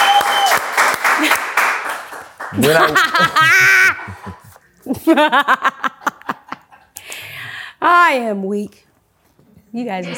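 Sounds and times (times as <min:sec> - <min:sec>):
applause: 0:00.0 - 0:03.2
speech: 0:02.5 - 0:04.2, 0:05.1 - 0:05.9, 0:07.8 - 0:08.8, 0:09.7 - 0:10.1
laughter: 0:02.5 - 0:06.8.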